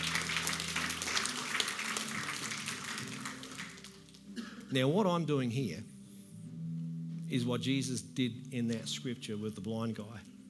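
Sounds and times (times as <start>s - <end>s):
audience applause: 0.0s - 4.2s
low held musical tones: 0.0s - 10.4s
speech: 4.7s - 5.9s, 7.3s - 10.3s.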